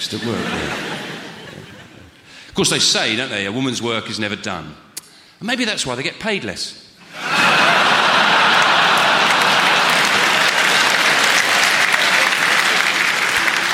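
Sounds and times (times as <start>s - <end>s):
laughter: 0.0s - 2.2s, 7.0s - 13.7s
speech: 0.1s - 1.0s, 2.6s - 7.3s
loud clapping: 7.3s - 13.7s.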